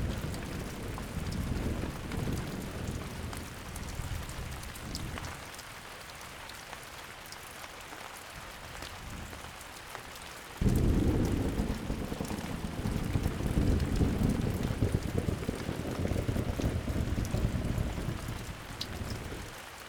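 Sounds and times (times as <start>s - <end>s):
thunderstorm: 0.0s - 5.4s, 10.6s - 19.6s.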